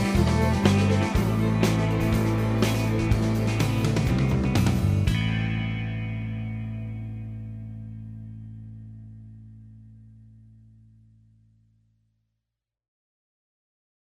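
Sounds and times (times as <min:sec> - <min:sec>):
backing track: 0:00.0 - 0:09.6.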